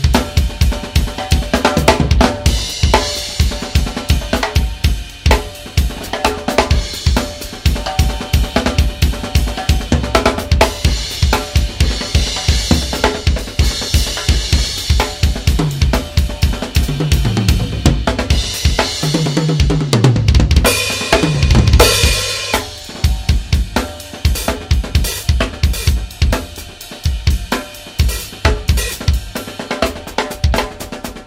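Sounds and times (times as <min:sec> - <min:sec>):
drum kit with snare drum: 0:00.0 - 0:31.2.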